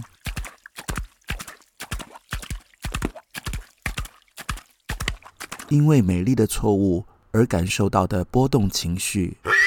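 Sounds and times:
horse hooves clip-clopping: 0.0s - 5.7s
speech: 5.7s - 9.5s.

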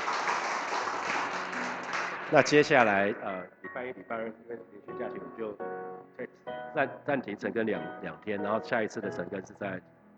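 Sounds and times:
applause: 0.0s - 3.1s
speech: 2.3s - 10.0s.

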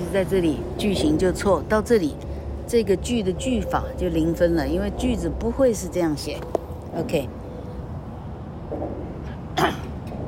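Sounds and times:
speech: 0.1s - 7.4s
throat clearing: 9.6s - 10.0s.

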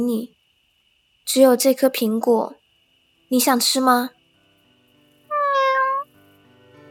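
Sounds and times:
speech: 0.0s - 0.4s, 1.3s - 2.6s, 3.3s - 4.2s
cat meowing: 5.3s - 6.1s.

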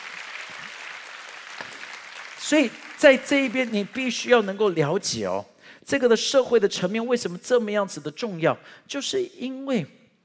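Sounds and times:
audience applause: 0.0s - 4.2s
speech: 2.5s - 10.0s.

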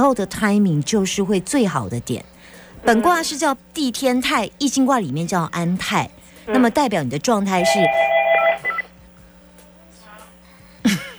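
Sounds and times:
speech: 0.0s - 8.1s
faint murmuring: 2.2s - 3.4s, 6.1s - 8.9s
telephone keypad dialing tones: 7.6s - 8.9s.

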